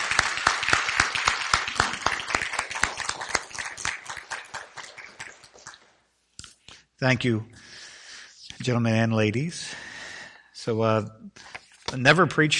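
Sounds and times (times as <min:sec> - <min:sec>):
audience applause: 0:00.0 - 0:05.8
speech: 0:07.0 - 0:07.6, 0:08.6 - 0:09.9, 0:10.6 - 0:12.5.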